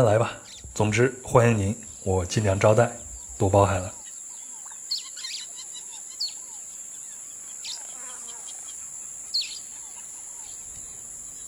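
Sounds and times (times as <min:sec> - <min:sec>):
speech: 0:00.0 - 0:04.0
high-pitched insect drone in the Amazon rainforest: 0:00.0 - 0:11.4.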